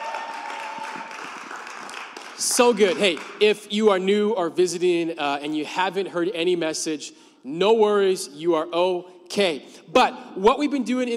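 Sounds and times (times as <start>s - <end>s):
crowd applauding: 0.0s - 3.4s
speech: 2.4s - 11.1s.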